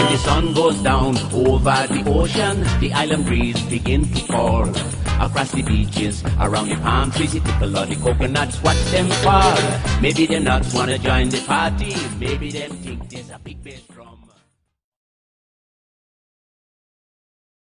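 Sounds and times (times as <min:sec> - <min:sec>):
calypso music: 0:00.0 - 0:13.9.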